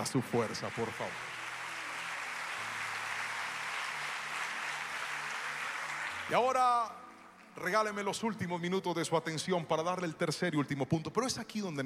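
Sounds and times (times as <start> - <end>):
speech: 0.0 - 1.3, 6.3 - 7.0, 7.6 - 11.8
audience applauding: 0.0 - 8.1.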